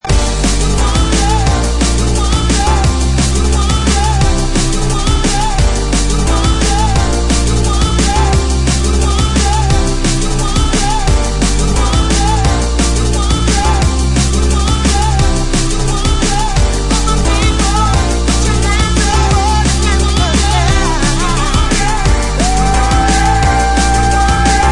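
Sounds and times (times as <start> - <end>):
piano anthem: 0.0 - 24.7.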